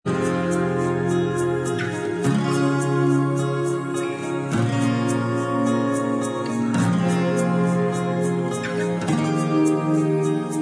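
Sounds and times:
bossa nova style instrumental backing track: 0.1 - 10.6.

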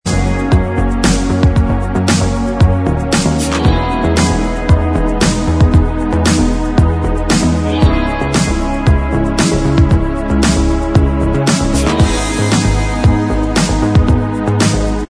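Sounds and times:
instrumental backing track: 0.0 - 15.0.

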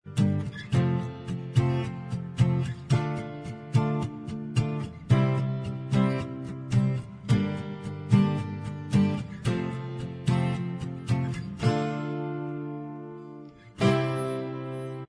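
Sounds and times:
acoustic style instrumental track: 0.0 - 15.0.

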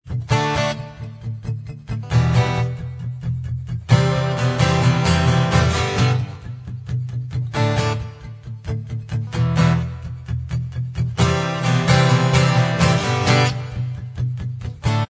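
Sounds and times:
acoustic instrumental backing track: 0.0 - 15.0.

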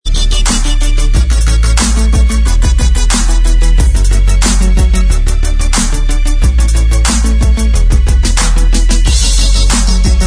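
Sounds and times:
instrumental backing track: 0.0 - 10.2.

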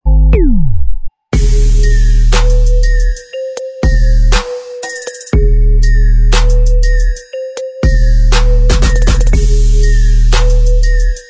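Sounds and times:
instrumental backing track: 0.1 - 11.2.

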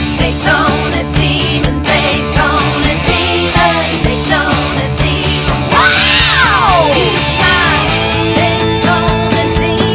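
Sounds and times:
backing vocals: 0.2 - 9.9.

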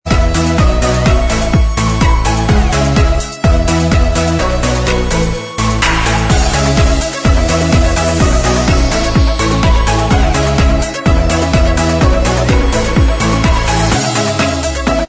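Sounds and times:
instrumental backing track: 0.1 - 15.0.

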